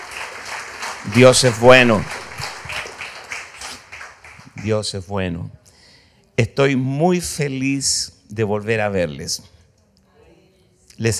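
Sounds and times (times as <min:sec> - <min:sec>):
rhythmic audience clapping: 0:00.0 - 0:05.1
speech: 0:01.0 - 0:02.2, 0:04.6 - 0:05.6, 0:06.4 - 0:09.6, 0:11.0 - 0:11.1.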